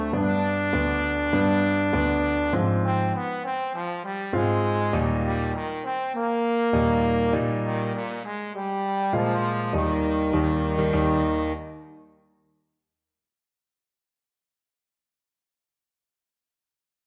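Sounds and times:
trombone melody: 0.0s - 12.1s.

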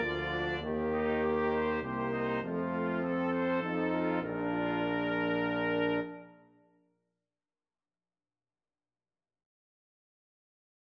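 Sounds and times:
brass quintet: 0.0s - 6.6s.

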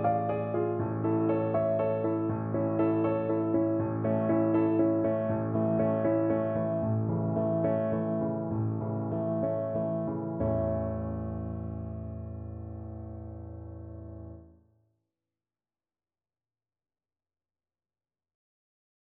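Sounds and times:
piano trio: 0.0s - 14.5s.

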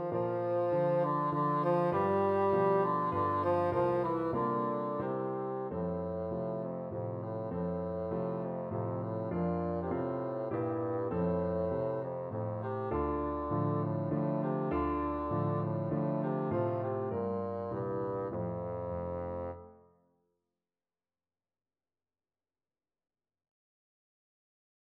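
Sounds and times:
bassoon playing a waltz: 0.0s - 19.8s.

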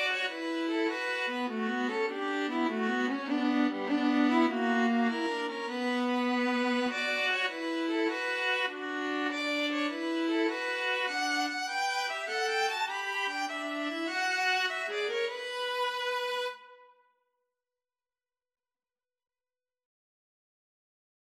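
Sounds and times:
string quartet in a hall: 0.0s - 16.7s.

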